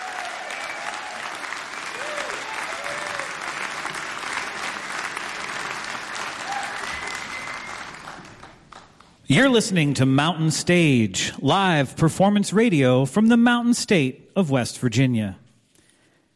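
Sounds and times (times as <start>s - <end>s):
faint cheers and whoops: 0.0s - 3.5s, 6.2s - 8.2s
crowd applause: 0.0s - 9.2s
speech: 9.3s - 15.4s.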